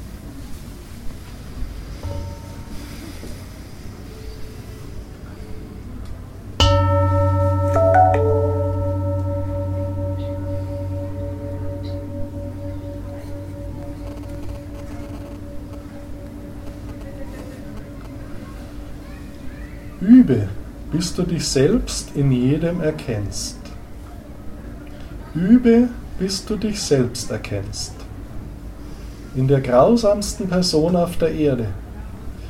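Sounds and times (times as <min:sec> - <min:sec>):
meditation bell ringing: 0:02.0 - 0:03.4, 0:06.6 - 0:19.5
speech: 0:20.3 - 0:23.6, 0:25.4 - 0:28.0, 0:29.4 - 0:31.8.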